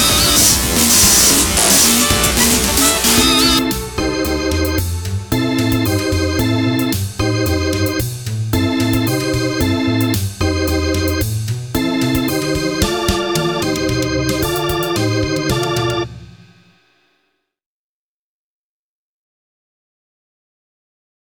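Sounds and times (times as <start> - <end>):
odd disgusting jazz music: 0.0 - 16.6.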